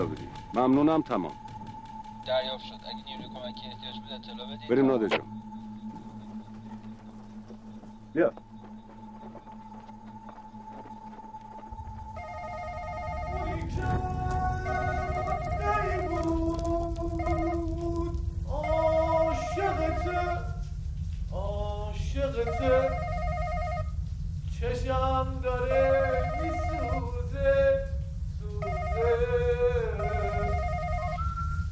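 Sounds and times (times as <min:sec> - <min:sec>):
speech: 0:00.0 - 0:01.4, 0:02.3 - 0:05.5, 0:08.2 - 0:08.5, 0:24.6 - 0:27.8
steady low rumble: 0:00.0 - 0:31.7
melodic electronic telephone ringtone: 0:12.2 - 0:13.8, 0:14.6 - 0:16.2, 0:17.2 - 0:17.6, 0:22.5 - 0:23.9, 0:25.7 - 0:27.1, 0:28.6 - 0:31.7.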